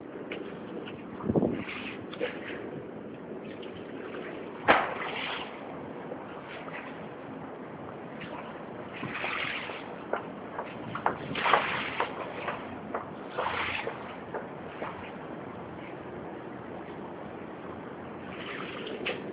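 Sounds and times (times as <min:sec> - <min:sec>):
water of the Thames: 0:00.0 - 0:19.3.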